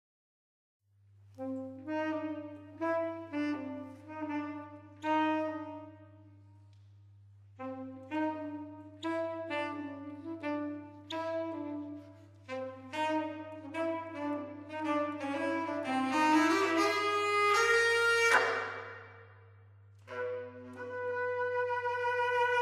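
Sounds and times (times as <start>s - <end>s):
saxophone playing blues: 1.4s - 6.3s, 7.6s - 18.8s, 20.0s - 22.6s.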